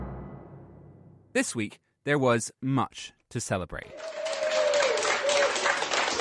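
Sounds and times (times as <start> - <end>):
speech: 1.4 - 4.2
staff applauding: 3.9 - 6.1.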